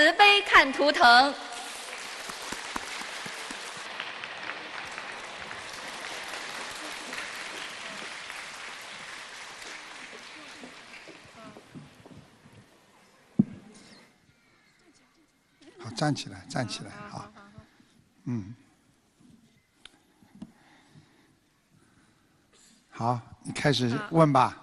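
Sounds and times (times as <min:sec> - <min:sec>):
speech: 0:00.0 - 0:01.5, 0:16.0 - 0:17.3, 0:18.3 - 0:18.6, 0:23.0 - 0:24.6
sustained audience applause: 0:01.5 - 0:12.6.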